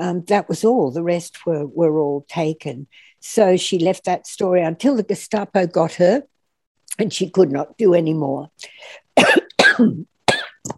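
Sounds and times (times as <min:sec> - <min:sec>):
speech: 0:00.0 - 0:06.3, 0:06.9 - 0:10.7
person coughing: 0:09.2 - 0:10.7.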